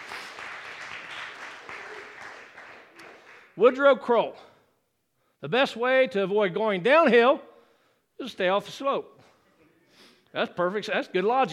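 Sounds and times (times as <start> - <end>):
audience hand clapping: 0.0 - 3.6
speech: 3.6 - 4.5, 5.4 - 7.5, 8.2 - 9.2, 10.3 - 11.5.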